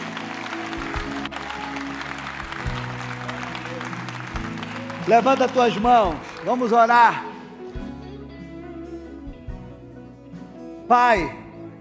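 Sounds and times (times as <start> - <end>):
audience applauding: 0.0 - 7.5
speech: 5.0 - 7.3, 10.9 - 11.4.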